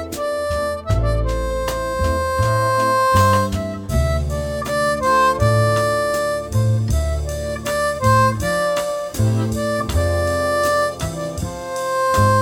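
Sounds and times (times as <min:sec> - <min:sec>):
harp music in C at 80: 0:00.0 - 0:12.4.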